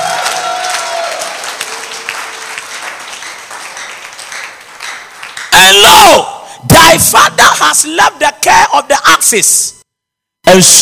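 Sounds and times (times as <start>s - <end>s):
audience clapping: 0.0s - 6.0s
speech: 7.0s - 8.4s, 9.2s - 9.8s, 10.4s - 10.7s.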